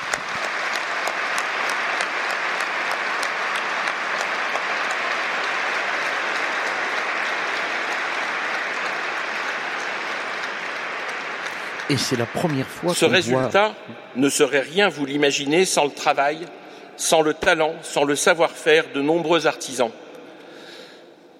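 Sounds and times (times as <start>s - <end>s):
large crowd applauding in a cathedral: 0.0s - 14.0s
speech: 11.9s - 20.0s.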